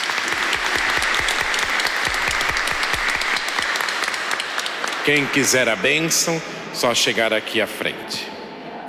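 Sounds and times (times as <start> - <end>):
audience applause: 0.0 - 6.4
speech: 5.0 - 8.4.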